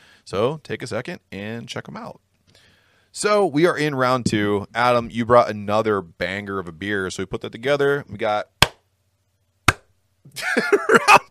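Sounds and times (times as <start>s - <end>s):
speech: 0.3s - 8.6s, 10.3s - 11.2s
hand claps: 9.7s - 9.9s
laughter: 10.4s - 11.2s.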